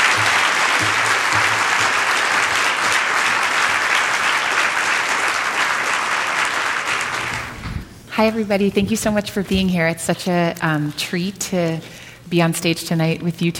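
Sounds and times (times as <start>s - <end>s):
audience at the JCCSF applauding to welcome speakers on stage: 0.0s - 7.6s
speech: 8.2s - 13.5s.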